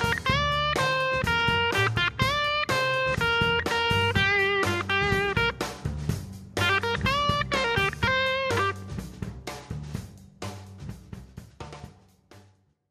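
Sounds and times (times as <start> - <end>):
four-note blues guitar solo: 0.0 - 5.6, 6.6 - 8.9.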